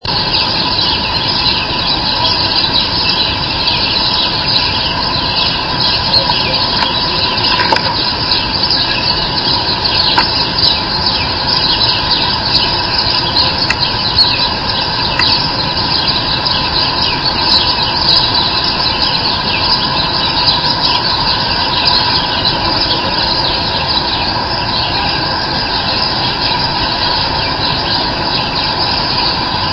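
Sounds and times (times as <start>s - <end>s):
birdsong: 0.0s - 29.7s.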